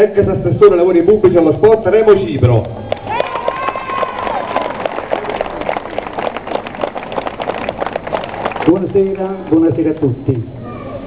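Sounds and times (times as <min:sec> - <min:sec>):
speech: 0:00.0 - 0:02.9, 0:08.7 - 0:10.6
crowd clapping: 0:02.6 - 0:10.1.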